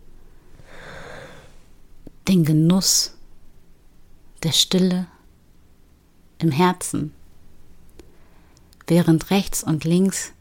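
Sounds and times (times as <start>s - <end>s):
slow breath: 0.3s - 1.8s
speech: 2.3s - 3.2s, 4.4s - 5.1s, 6.4s - 7.2s, 8.9s - 10.4s.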